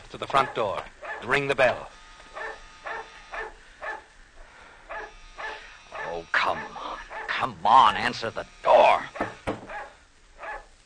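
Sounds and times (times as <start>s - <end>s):
speech: 0.1s - 2.0s, 6.2s - 9.3s
dog barking: 0.3s - 1.4s, 2.4s - 4.1s, 4.9s - 7.4s, 9.2s - 10.7s.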